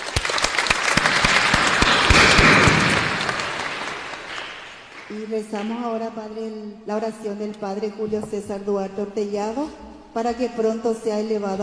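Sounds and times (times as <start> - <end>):
audience applause: 0.0 - 5.1
speech: 5.2 - 11.6.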